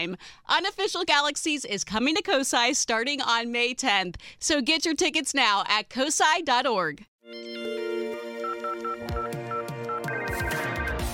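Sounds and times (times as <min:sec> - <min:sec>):
speech: 0:00.0 - 0:07.8
telephone ringing: 0:07.3 - 0:11.1.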